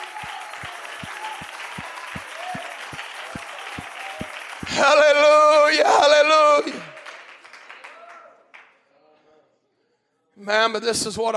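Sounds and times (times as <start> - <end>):
audience clapping hands in a steady rhythm: 0.0 - 8.8
speech: 4.7 - 6.8, 10.5 - 11.3.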